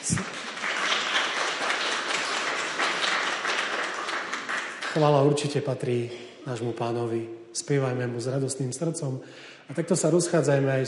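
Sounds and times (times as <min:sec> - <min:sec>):
applause in a church after young singers finish Sunday cantatas: 0:00.0 - 0:06.1
speech: 0:05.0 - 0:10.8.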